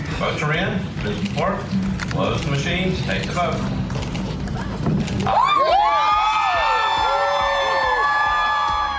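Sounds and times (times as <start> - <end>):
speech: 0.2 - 3.8, 4.8 - 6.1
cheering crowd in state house chamber: 5.2 - 8.9.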